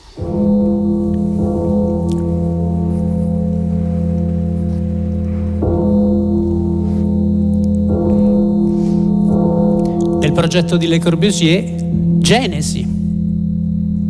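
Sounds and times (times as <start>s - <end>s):
recorded bell sounds in electronic music: 0.0s - 13.9s
speech: 10.4s - 13.0s.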